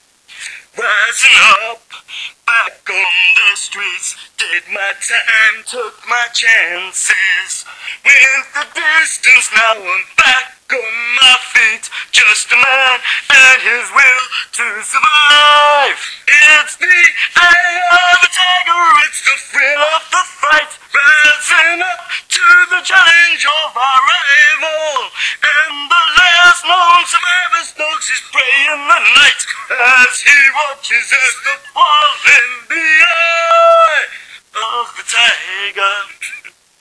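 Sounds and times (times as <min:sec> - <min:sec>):
radio: 0:00.0 - 0:36.7.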